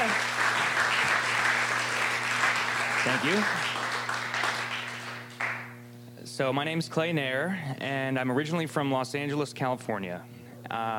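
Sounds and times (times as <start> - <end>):
audience applause welcoming a speaker onto a stage: 0.0 - 5.8
speech: 3.0 - 3.7, 6.4 - 10.9.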